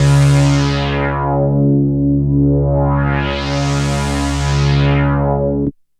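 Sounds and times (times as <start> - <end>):
synth pads: 0.0 - 5.7.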